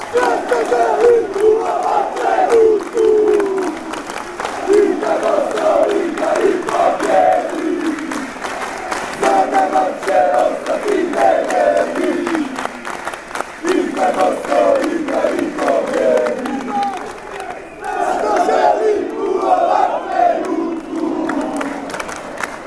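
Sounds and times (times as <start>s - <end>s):
clapping: 0.0s - 22.6s
people chanting: 0.0s - 22.6s.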